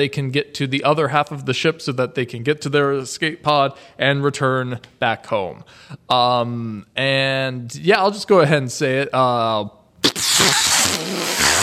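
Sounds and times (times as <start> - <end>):
speech: 0.0 - 9.8
wet fart sound effect: 10.0 - 11.6.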